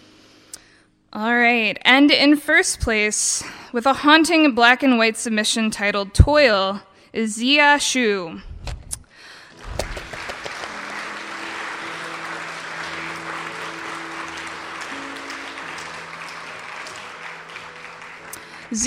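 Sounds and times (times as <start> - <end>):
speech: 1.1 - 8.5
crowd applauding: 9.6 - 18.8
faint sustained musical tones: 9.6 - 18.8.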